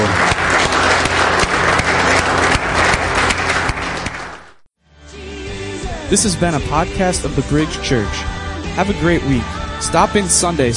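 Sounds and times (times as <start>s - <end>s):
audience applause: 0.0s - 4.7s
speech: 6.1s - 10.7s.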